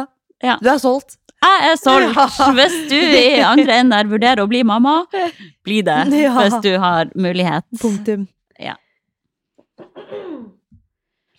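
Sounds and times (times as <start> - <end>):
speech: 0.0 - 8.8
laughter: 1.8 - 3.9
person clearing throat: 9.6 - 10.7.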